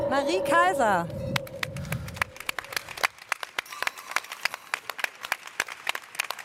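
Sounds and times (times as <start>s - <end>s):
speech: 0.2s - 1.2s
audience applause: 1.4s - 6.4s.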